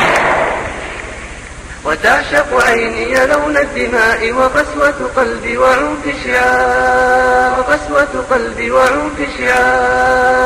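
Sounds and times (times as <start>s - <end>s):
explosion sound effect: 0.0s - 1.3s
speech: 1.9s - 10.4s.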